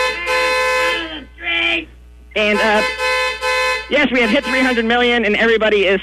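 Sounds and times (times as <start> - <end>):
car horns honking in celebration: 0.0 - 1.3, 2.4 - 5.3
speech: 2.4 - 2.9, 3.9 - 6.0.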